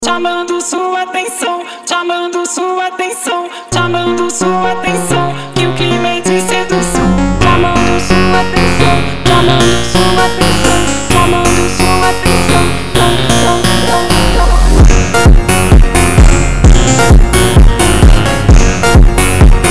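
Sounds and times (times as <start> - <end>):
phonk montagem music: 2.3 - 19.6.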